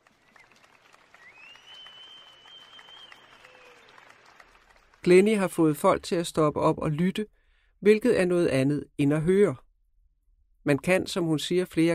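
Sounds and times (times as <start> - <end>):
big audience applause after a percussion performance: 0.0 - 5.4
faint gliding whistle-like tone: 1.2 - 3.9
speech: 5.0 - 9.6, 10.6 - 11.9.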